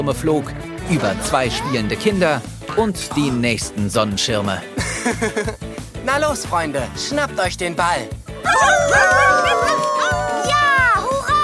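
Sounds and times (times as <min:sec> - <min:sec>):
speech: 0:00.0 - 0:10.1
laughter: 0:04.8 - 0:05.7
dogs barking excitedly: 0:08.5 - 0:10.7.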